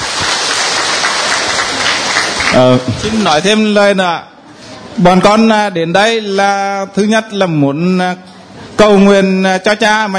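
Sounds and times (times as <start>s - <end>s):
applause at a Catholic church gathering: 0.0s - 3.4s
speech: 2.6s - 4.3s, 5.0s - 10.1s.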